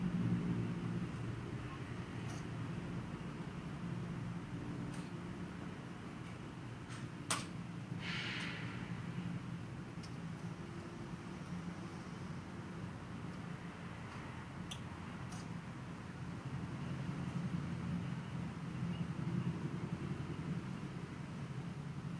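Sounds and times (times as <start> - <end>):
traffic-like rumble recorded from a house window: 0.0 - 22.1
clicks and ticks: 14.1 - 15.5.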